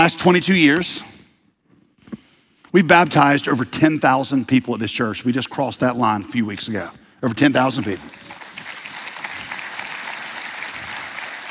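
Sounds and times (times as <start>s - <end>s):
speech: 0.0s - 1.2s, 2.7s - 8.2s
audience applause: 7.9s - 11.4s.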